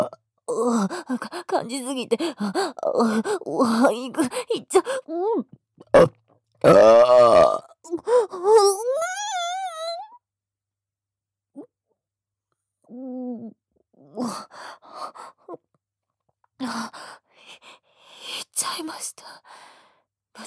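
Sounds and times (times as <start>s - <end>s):
speech: 0.0s - 9.4s, 12.9s - 15.6s, 16.6s - 19.8s
person burping: 5.8s - 7.8s
vocal moan: 5.9s - 7.7s.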